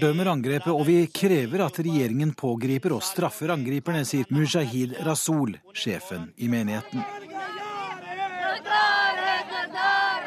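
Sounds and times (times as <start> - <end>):
speech: 0.0 - 7.6
large group of women shouting slogans: 6.8 - 10.2.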